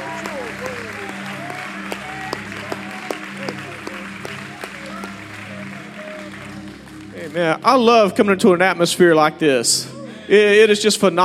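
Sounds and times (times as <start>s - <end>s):
audience clapping hands: 0.0s - 8.3s
speech: 7.3s - 11.2s.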